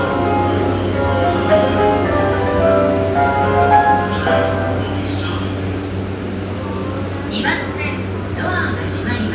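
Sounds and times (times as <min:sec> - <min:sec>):
JR Yamanote Line train at Akihabara, counterclockwise: 0:00.0 - 0:09.3.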